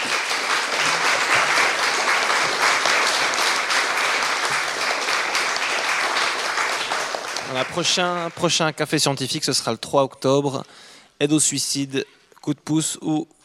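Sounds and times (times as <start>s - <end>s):
audience applause: 0.0s - 8.6s
speech: 7.6s - 13.4s.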